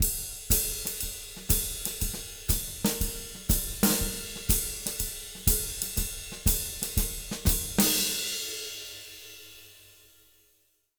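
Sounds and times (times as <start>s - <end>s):
jazz Latin shuffle drum loop: 0.0s - 8.3s.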